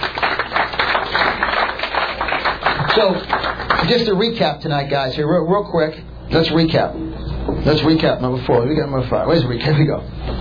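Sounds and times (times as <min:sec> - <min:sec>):
audience applause at an evening marketing seminar: 0:00.0 - 0:03.9
speech: 0:02.9 - 0:10.3.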